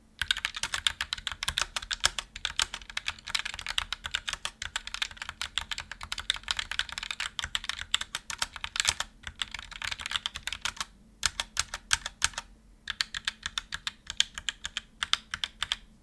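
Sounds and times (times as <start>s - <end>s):
Roccat Vulcan II Mini keyboard sound test: 0.2s - 15.9s.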